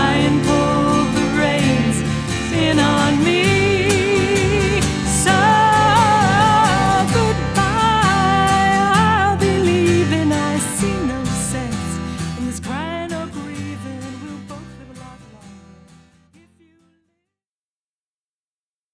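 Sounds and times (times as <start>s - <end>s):
acoustic band playing: 0.0s - 14.5s.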